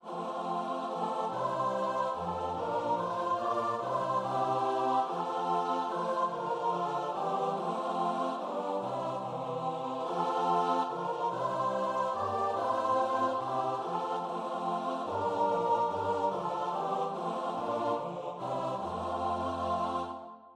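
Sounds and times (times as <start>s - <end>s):
choir singing: 0.0s - 20.5s.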